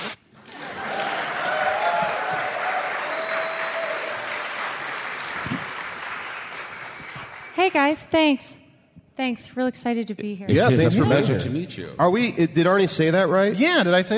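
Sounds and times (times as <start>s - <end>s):
audience applause: 0.4s - 7.6s
faint cheering voices: 0.6s - 4.6s
speech: 7.6s - 8.6s, 9.2s - 14.1s.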